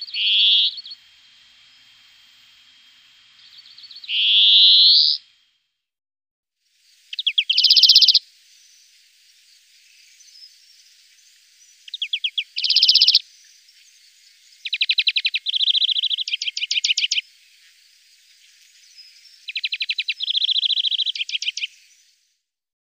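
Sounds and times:
European greenfinch voice: 0.0 - 1.1, 3.4 - 5.2, 7.1 - 8.9, 9.5 - 22.2.

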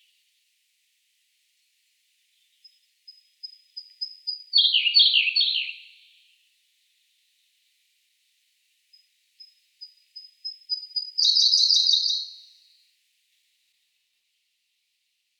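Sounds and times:
Siberian blue robin voice: 2.4 - 6.0, 9.4 - 12.5.

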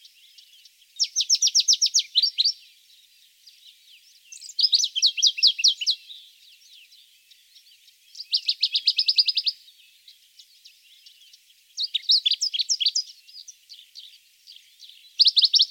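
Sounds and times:
dusky warbler calling: 0.0 - 15.7.

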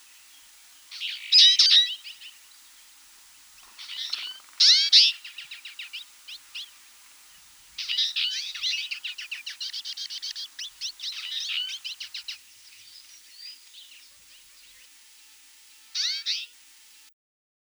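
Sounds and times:
twite voice: 0.9 - 2.4, 3.6 - 14.9, 15.9 - 16.6.

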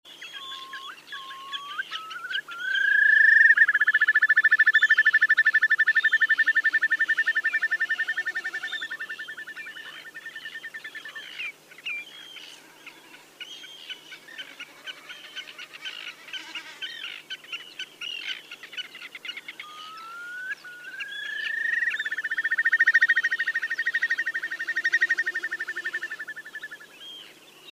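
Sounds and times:
whimbrel calling: 0.2 - 27.6.

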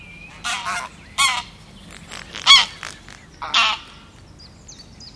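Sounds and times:
grey goose calling: 0.5 - 4.0.

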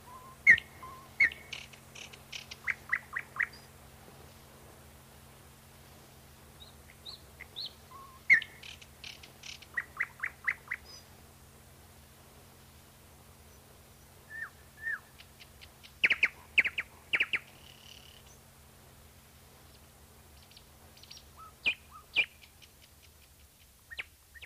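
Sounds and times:
common nightingale singing: 0.0 - 3.7, 6.6 - 11.1, 13.5 - 18.5, 20.4 - 24.4.

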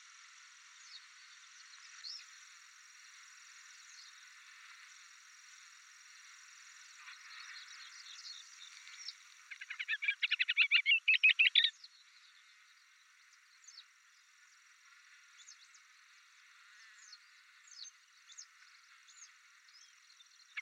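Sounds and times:
booted warbler singing: 7.3 - 14.3, 16.9 - 20.6.

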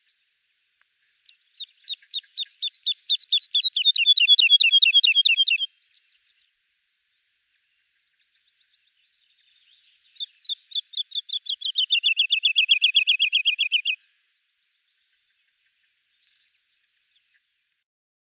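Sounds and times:
woodlark singing: 1.2 - 6.5, 9.2 - 17.4.

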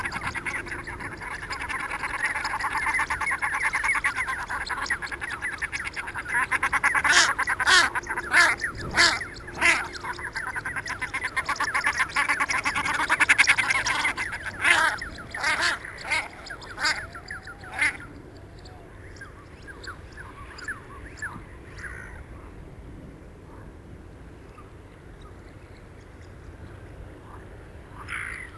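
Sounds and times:
common shelduck calling: 0.0 - 18.1.

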